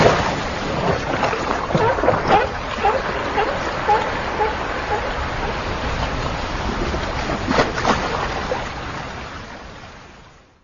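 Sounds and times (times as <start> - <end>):
waves splashing on a boat: 0.0 - 10.6
seal barking nearby: 1.7 - 5.8.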